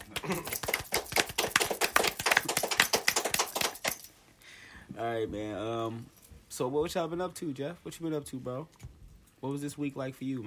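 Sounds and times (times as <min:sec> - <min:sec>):
hand claps: 0:00.0 - 0:04.1
speech: 0:05.0 - 0:10.4.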